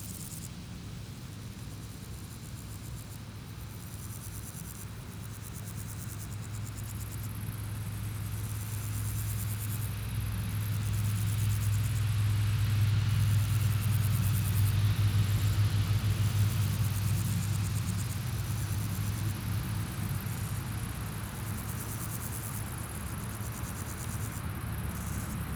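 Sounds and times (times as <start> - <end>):
grasshopper stridulation on a sunny day in Brussels: 5.5 - 25.5.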